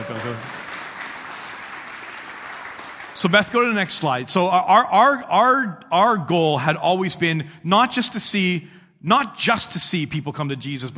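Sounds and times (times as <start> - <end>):
audience applause: 0.0 - 3.4
speech: 0.2 - 0.6, 3.2 - 10.9.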